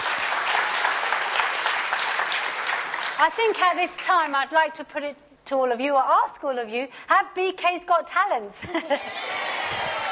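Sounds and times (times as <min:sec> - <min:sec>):
crowd clapping: 0:00.0 - 0:04.1
speech: 0:03.2 - 0:10.0.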